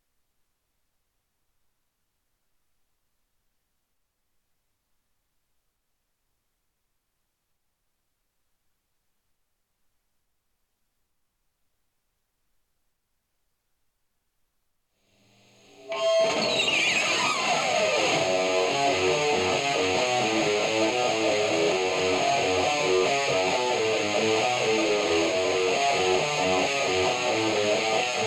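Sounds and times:
guitar: 15.1 - 28.2.

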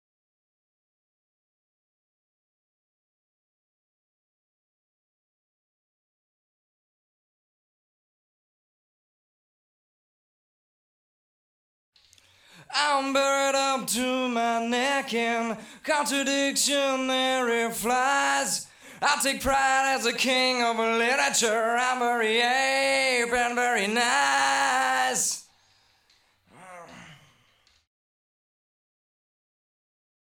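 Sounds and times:
person singing: 12.6 - 25.5.

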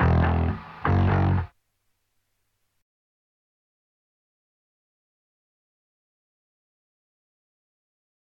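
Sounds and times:
rhythm: 0.0 - 1.5.

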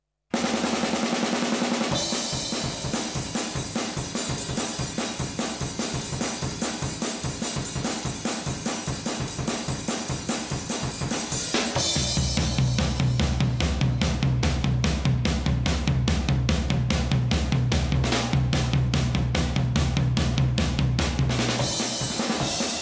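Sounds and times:
drums: 0.3 - 22.8.

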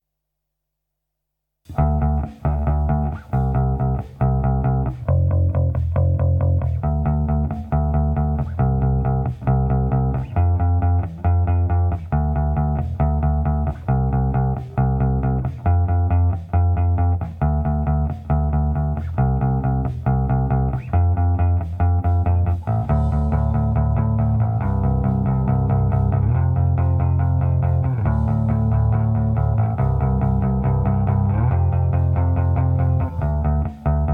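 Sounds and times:
rhythm: 1.7 - 34.1.

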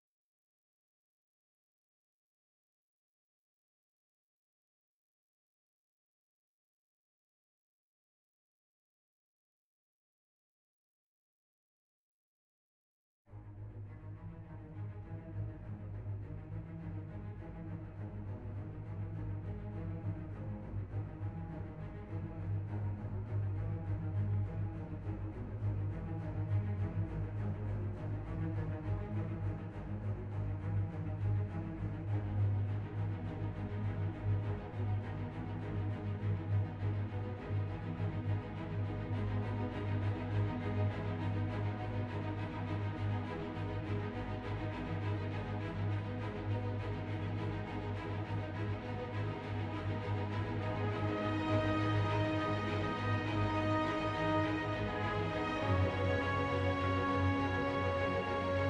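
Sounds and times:
strings: 13.3 - 58.6.

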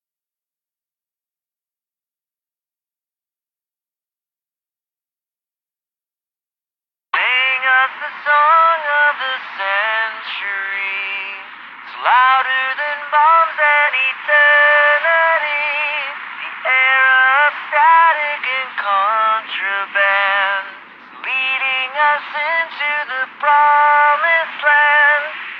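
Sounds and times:
person singing: 7.2 - 25.5.

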